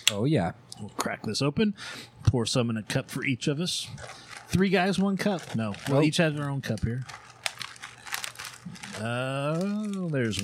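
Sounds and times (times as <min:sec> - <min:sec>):
speech: 0:00.1 - 0:07.3, 0:08.6 - 0:10.4
crinkling of cookie package being closed: 0:03.6 - 0:10.4.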